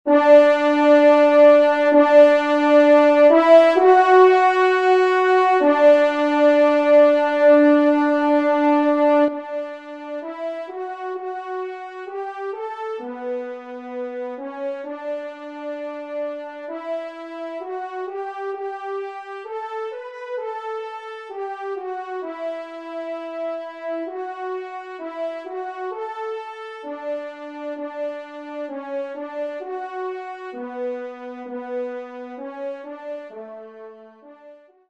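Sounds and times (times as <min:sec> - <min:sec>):
offertory organ piece: 0:00.1 - 0:33.9.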